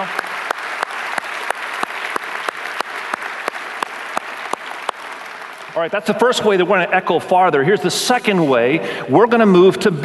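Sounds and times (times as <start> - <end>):
audience applause: 0.0 - 6.8
speech: 5.8 - 10.0.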